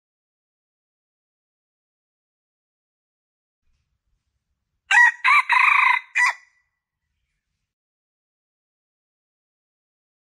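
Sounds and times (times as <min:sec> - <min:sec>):
red junglefowl crowing: 0:04.9 - 0:06.5.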